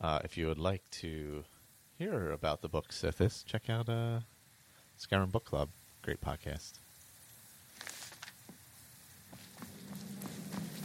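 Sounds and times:
speech: 0.0s - 4.3s, 5.0s - 6.8s
footsteps going up stairs and out a door: 9.3s - 10.8s.

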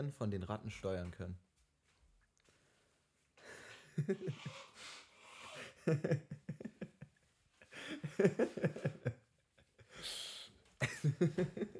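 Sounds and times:
speech: 0.0s - 1.5s, 4.0s - 5.0s, 5.8s - 6.6s, 7.8s - 9.2s, 10.8s - 11.7s
laughter: 3.9s - 4.6s, 5.6s - 7.1s, 7.7s - 9.2s, 10.8s - 11.7s
person blowing nose: 4.2s - 5.8s, 9.9s - 10.6s.

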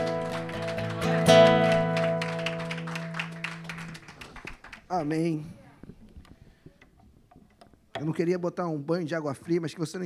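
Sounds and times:
audience applauding: 0.0s - 5.4s
speech: 5.0s - 5.6s, 8.0s - 10.0s.

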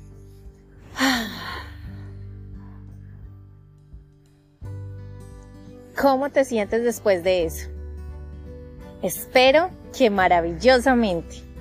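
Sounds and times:
breath during a guided breathing exercise: 0.8s - 3.4s
speech: 6.0s - 7.7s, 9.0s - 11.4s.

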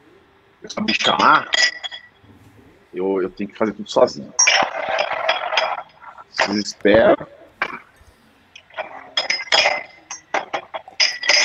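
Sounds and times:
speech: 0.6s - 1.8s, 2.9s - 4.4s, 6.4s - 7.4s
glass clinking: 0.7s - 2.2s, 4.1s - 7.9s, 8.6s - 11.4s.

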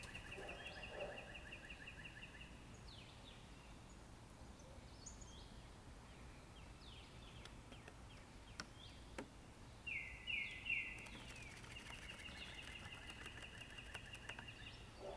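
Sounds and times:
buzzy trilling birdsong in forest: 0.0s - 4.0s, 4.6s - 15.1s
faint clicks: 10.9s - 14.5s.

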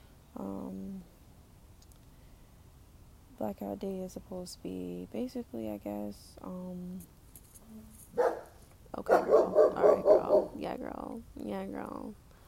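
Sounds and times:
speech: 3.4s - 7.2s, 9.0s - 12.2s
neighbor's dog barking: 8.2s - 10.6s.

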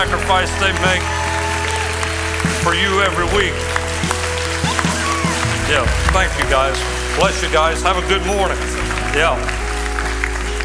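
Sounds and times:
speech: 0.0s - 1.2s, 2.6s - 3.7s, 5.7s - 9.6s
audience applause: 0.0s - 10.6s.

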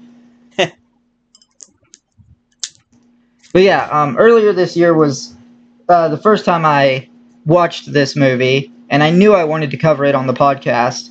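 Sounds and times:
speech: 0.6s - 0.8s, 3.6s - 11.0s
computer mouse clicking: 1.4s - 3.1s.

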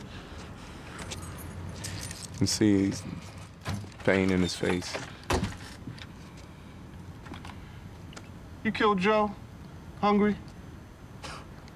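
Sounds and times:
keys jingling: 0.9s - 5.0s
speech: 2.4s - 3.3s, 4.0s - 5.1s, 8.7s - 9.4s, 10.0s - 10.5s.

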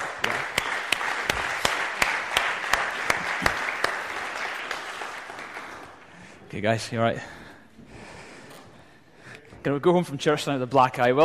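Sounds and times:
church event audience applauding two volunteers: 0.0s - 6.1s
sharp distinct claps: 0.0s - 6.1s
speech: 6.6s - 7.4s, 9.6s - 11.2s.

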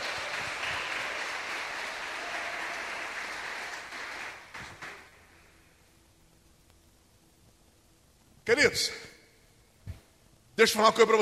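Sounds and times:
audience applauding: 0.0s - 5.3s
speech: 8.5s - 9.1s, 10.6s - 11.2s.

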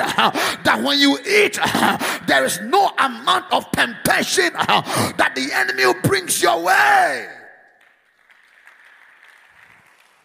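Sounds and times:
speech: 0.1s - 7.4s
audience clapping steadily in a large room: 7.6s - 10.2s.

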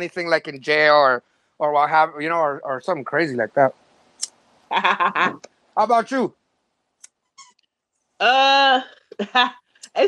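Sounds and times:
speech: 0.0s - 3.8s, 4.7s - 6.4s, 8.2s - 10.0s
squeaky toy squeezed by a dog: 7.4s - 7.6s.

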